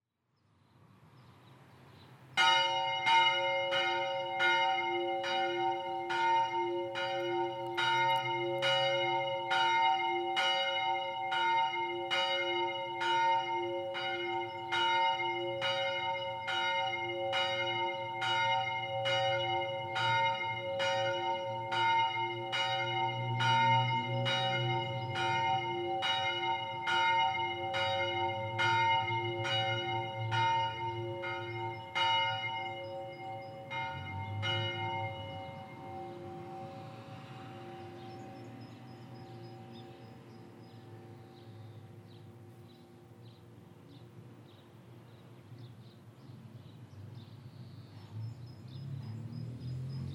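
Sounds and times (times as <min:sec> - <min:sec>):
bell ringer playing solos: 0:02.4 - 0:40.1.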